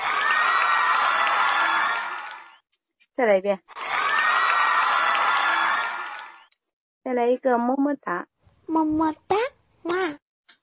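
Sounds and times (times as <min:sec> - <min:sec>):
applause: 0:00.0 - 0:02.6, 0:03.7 - 0:06.5
cheering: 0:00.0 - 0:02.6, 0:03.7 - 0:06.5
speech: 0:03.2 - 0:03.9, 0:07.1 - 0:10.2.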